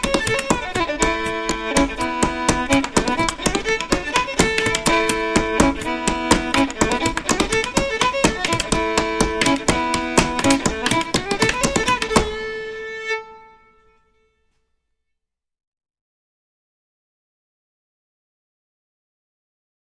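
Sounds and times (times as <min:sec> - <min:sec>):
clogging footsteps: 0:00.0 - 0:12.7
fiddle: 0:00.0 - 0:14.4.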